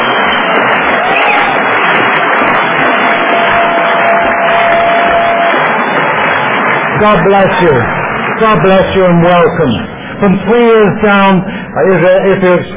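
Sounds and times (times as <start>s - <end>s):
crowd roaring: 0.0s - 10.0s
speech: 7.0s - 12.7s.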